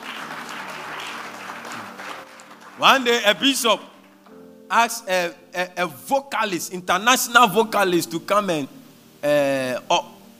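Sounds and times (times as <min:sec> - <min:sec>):
audience clapping: 0:00.0 - 0:04.3
speech: 0:02.8 - 0:03.9, 0:04.7 - 0:10.1.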